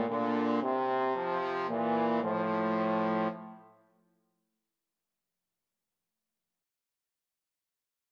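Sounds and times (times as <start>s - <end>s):
trombone duet: 0.0s - 3.6s.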